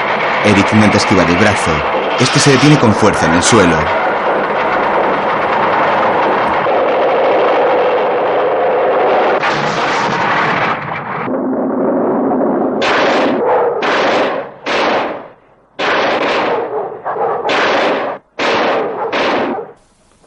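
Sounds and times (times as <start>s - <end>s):
continuous loud mechanical rumbling and clatter: 0.0s - 20.2s
speech: 0.4s - 4.0s
loud heavy gunshots fired at machines: 12.8s - 16.7s, 17.5s - 19.7s.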